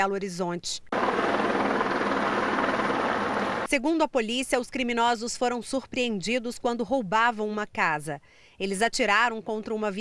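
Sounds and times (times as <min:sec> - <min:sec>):
speech: 0:00.0 - 0:01.4, 0:03.7 - 0:09.9
helicopter flying overhead: 0:00.9 - 0:03.7.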